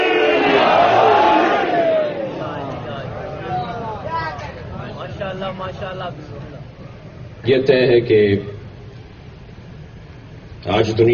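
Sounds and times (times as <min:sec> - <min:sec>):
large crowd chanting a response to a religious slogan praising Ali: 0:00.0 - 0:04.9
speech: 0:05.7 - 0:06.4, 0:07.4 - 0:08.6, 0:10.7 - 0:11.1.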